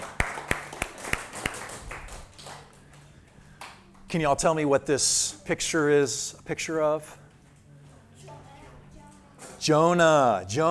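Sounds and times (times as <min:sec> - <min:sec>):
small group clapping: 0:00.0 - 0:04.2
speech: 0:04.1 - 0:07.2, 0:09.6 - 0:10.6.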